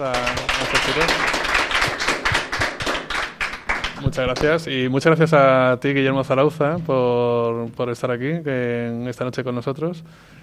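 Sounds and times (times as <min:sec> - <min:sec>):
speech: 0:00.0 - 0:01.4, 0:04.0 - 0:10.4
audience applause: 0:00.0 - 0:04.4.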